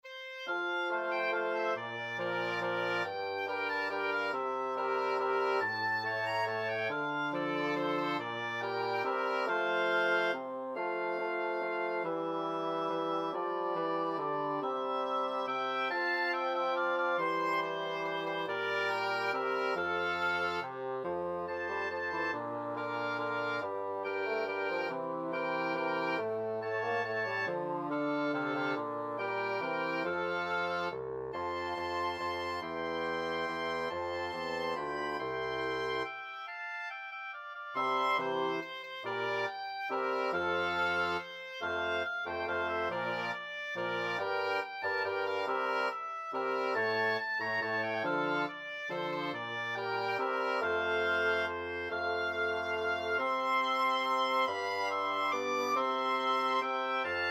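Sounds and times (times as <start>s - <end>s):
wind quartet playing a Christmas carol: 0.0s - 57.2s.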